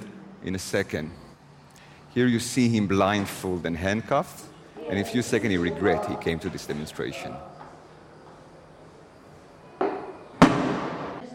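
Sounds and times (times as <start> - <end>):
speech: 0.4 - 1.2, 2.1 - 7.5
rubber-bullet gunshots at a West Bank demonstration: 10.4 - 11.2.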